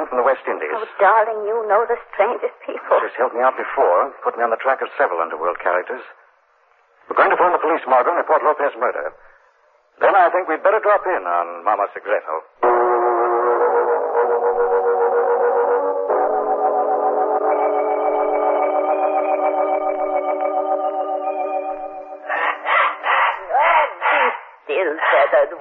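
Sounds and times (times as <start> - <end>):
speech: 0.1 - 6.2, 7.1 - 9.3, 10.0 - 12.8, 24.9 - 25.5
steady tonal drone with electronic quality: 12.6 - 22.4
pet bird squawking: 22.3 - 24.4.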